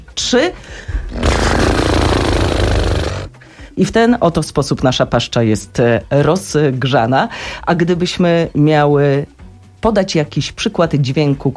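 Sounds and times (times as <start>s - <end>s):
speech: 0.3s - 2.4s, 3.8s - 11.5s
people imitating a horse's snort with fluttering lips: 1.1s - 3.4s.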